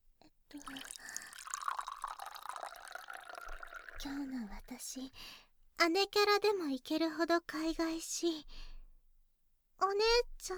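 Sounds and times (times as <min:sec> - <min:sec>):
water pouring into a cup: 0:00.5 - 0:04.5
speech: 0:04.0 - 0:08.7, 0:09.8 - 0:10.5.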